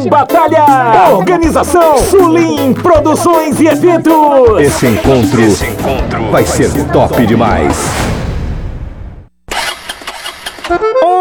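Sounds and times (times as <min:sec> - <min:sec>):
speech: 0:00.0 - 0:08.1
troublesome motorcycle engine cranking and failing to start: 0:09.5 - 0:10.8.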